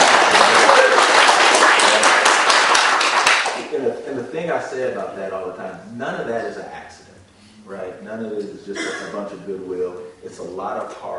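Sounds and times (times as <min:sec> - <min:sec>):
audience applause: 0:00.0 - 0:03.7
speech: 0:04.6 - 0:07.0, 0:07.7 - 0:11.1.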